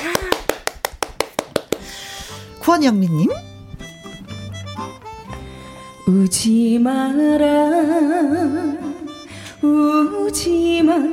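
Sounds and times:
clapping: 0.0 - 2.0
speech: 2.6 - 3.5, 6.1 - 8.8, 9.6 - 11.1.

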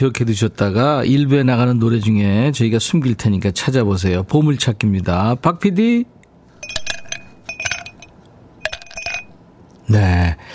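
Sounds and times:
speech: 0.0 - 6.2, 9.9 - 10.5
ice cubes dropping into a glass: 6.6 - 9.4.

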